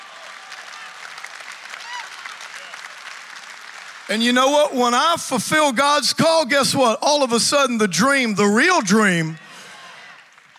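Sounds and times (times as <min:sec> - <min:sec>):
audience applause: 0:00.0 - 0:04.9, 0:09.3 - 0:10.5
speech: 0:04.1 - 0:09.4.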